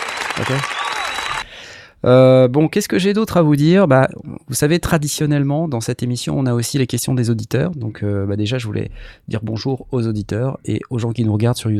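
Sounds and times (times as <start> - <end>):
applause: 0.0 - 1.6
speech: 0.4 - 0.8, 2.0 - 11.7.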